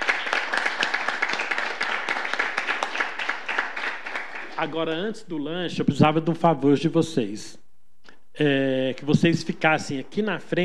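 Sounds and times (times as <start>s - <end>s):
audience applause: 0.0s - 4.8s
speech: 4.6s - 7.6s, 8.4s - 10.6s.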